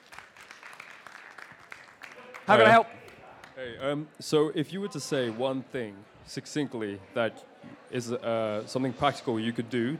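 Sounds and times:
audience applause: 0.0s - 3.2s
speech: 2.5s - 3.0s, 3.6s - 9.9s.

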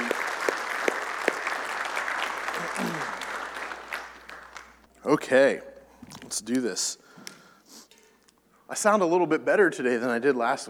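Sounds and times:
audience clapping: 0.0s - 5.3s
speech: 5.0s - 7.0s, 8.7s - 10.6s.

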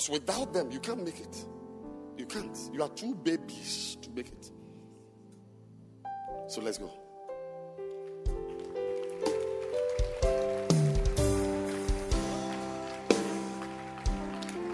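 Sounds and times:
speech: 0.0s - 1.6s, 2.2s - 4.6s, 6.5s - 7.0s
audience clapping: 8.0s - 14.7s.

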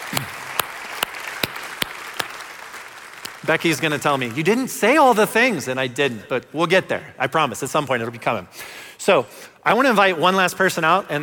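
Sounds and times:
audience applause: 0.0s - 4.5s
speech: 0.1s - 0.4s, 3.4s - 11.2s.

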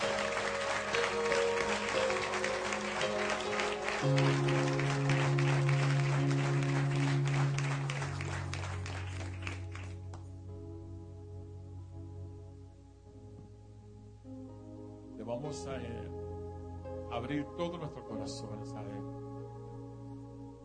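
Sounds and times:
audience applause: 0.0s - 10.2s
speech: 17.3s - 19.2s.

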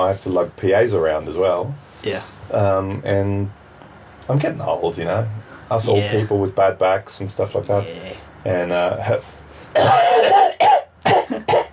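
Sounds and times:
speech: 0.0s - 3.6s, 4.3s - 10.6s
person coughing: 9.7s - 11.7s.

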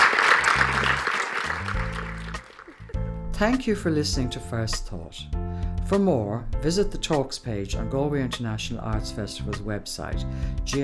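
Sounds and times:
crowd applause: 0.0s - 2.9s
low sustained musical tones: 0.4s - 9.6s
speech: 3.4s - 10.8s.

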